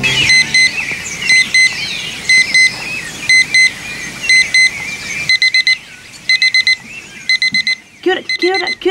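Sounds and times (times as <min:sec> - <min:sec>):
alarm clock ringing: 0:00.2 - 0:02.7, 0:03.3 - 0:03.7, 0:04.3 - 0:05.8, 0:06.3 - 0:08.8.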